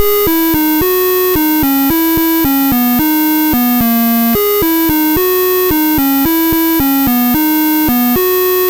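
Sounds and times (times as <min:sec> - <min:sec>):
Apple II synth chiptune: 0:00.0 - 0:08.6.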